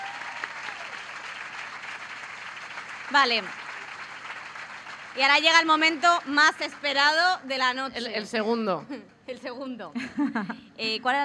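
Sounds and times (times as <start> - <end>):
audience applause: 0.0 - 7.4
speech: 3.1 - 3.6, 5.2 - 11.2
laughter: 10.0 - 10.7.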